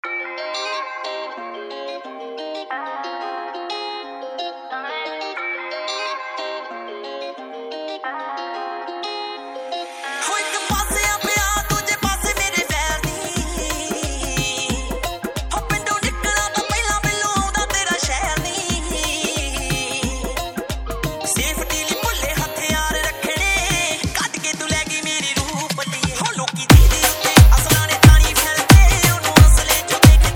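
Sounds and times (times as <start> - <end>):
dhol remix song: 10.2 - 30.3.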